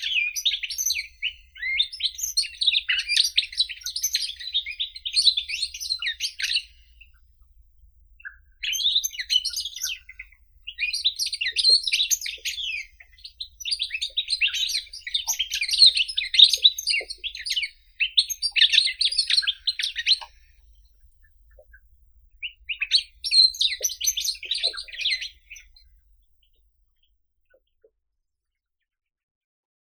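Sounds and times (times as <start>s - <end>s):
goldfinch Carduelis carduelis: 0.0s - 7.2s, 8.2s - 20.9s, 22.4s - 26.0s.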